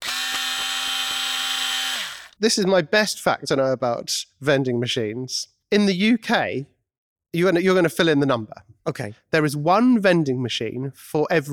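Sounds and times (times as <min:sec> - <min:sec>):
Bosch electric screwdriver whirring: 0:00.0 - 0:02.4
speech: 0:02.4 - 0:06.7, 0:07.3 - 0:11.5.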